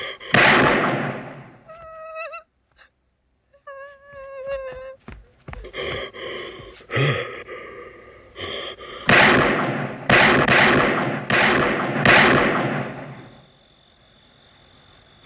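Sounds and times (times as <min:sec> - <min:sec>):
gunshots in a movie scene: 0:00.3 - 0:01.6, 0:09.1 - 0:13.4.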